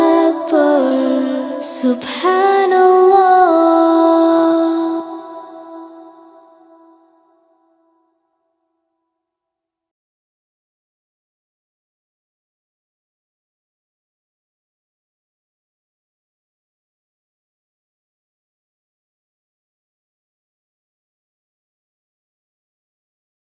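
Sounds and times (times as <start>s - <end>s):
person chanting tasbih vocal only: 0.0s - 7.4s.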